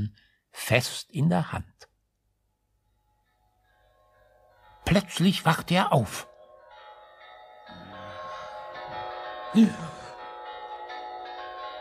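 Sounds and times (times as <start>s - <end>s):
speech: 0.0s - 1.8s, 4.9s - 6.3s, 9.5s - 10.0s
church bells ringing for Christmas service: 3.9s - 11.7s.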